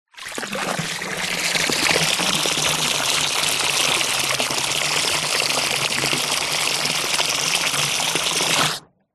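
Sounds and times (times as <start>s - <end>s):
household water running from hose into swimming pool: 0.1s - 8.9s.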